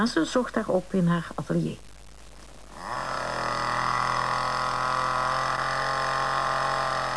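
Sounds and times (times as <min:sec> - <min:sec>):
speech: 0:00.0 - 0:01.9
chainsaw running: 0:02.7 - 0:07.1.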